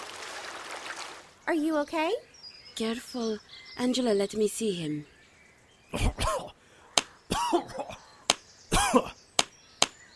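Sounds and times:
speech: 1.5s - 5.1s, 5.9s - 6.5s
person coughing water out of lungs: 6.0s - 6.5s, 7.3s - 8.0s, 8.7s - 9.2s.

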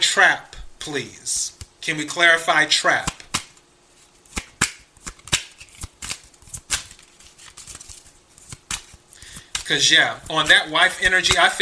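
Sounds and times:
speech: 0.2s - 3.2s, 9.7s - 11.6s
tarot cards being shuffled by hand: 3.0s - 11.6s.

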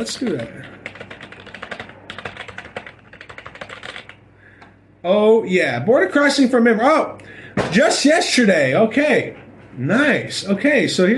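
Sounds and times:
speech: 0.0s - 0.8s, 5.0s - 11.1s
typing a YouTube search on a computer keyboard: 0.0s - 4.2s.

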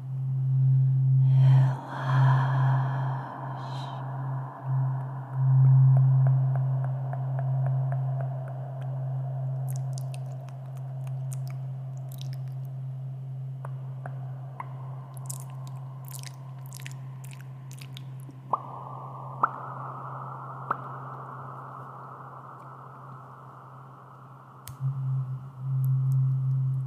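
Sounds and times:
tuning fork hum: 0.0s - 26.8s
mouth sounds: 9.7s - 12.6s
crisp ticks: 9.7s - 12.7s, 15.2s - 18.4s.

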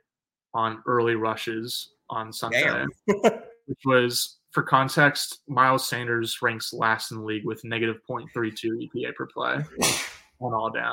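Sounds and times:
speech: 0.5s - 10.9s
sneeze: 9.8s - 10.2s.

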